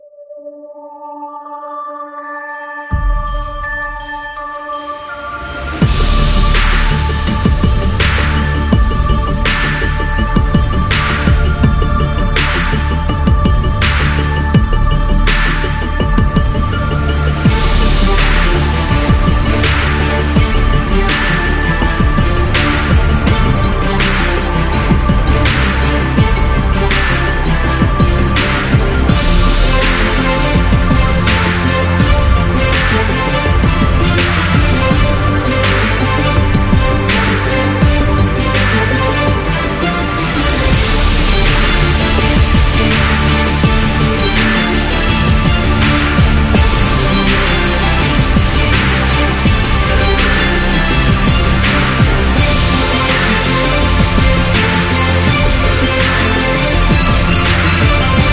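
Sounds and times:
epic hip hop music: 1.2 - 58.3.

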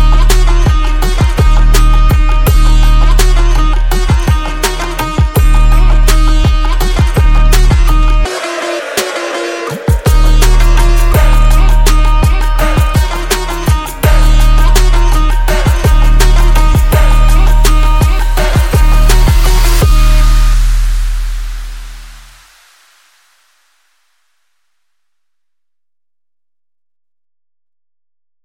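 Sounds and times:
ethnic trap music: 0.0 - 22.6.

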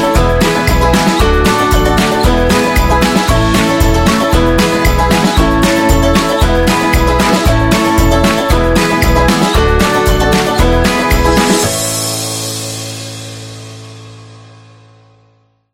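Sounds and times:
fun beat: 0.0 - 12.5.

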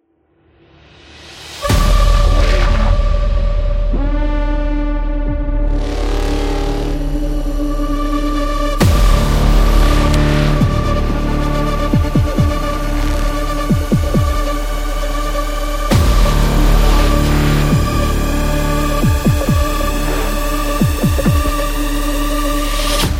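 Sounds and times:
action horror trailer music: 0.2 - 23.1.

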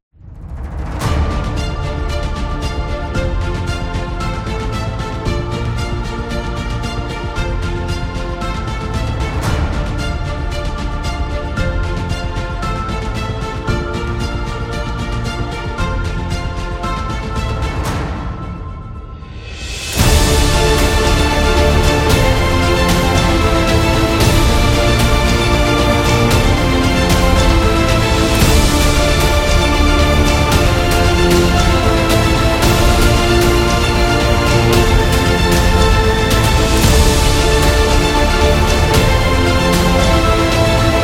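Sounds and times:
inspirational cinematic music: 0.2 - 41.0.

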